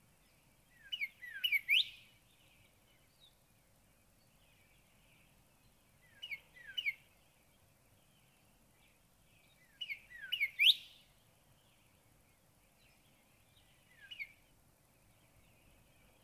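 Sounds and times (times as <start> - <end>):
Northern cardinal song of bright slurred whistled notes: 0.8 - 2.0, 9.8 - 11.0.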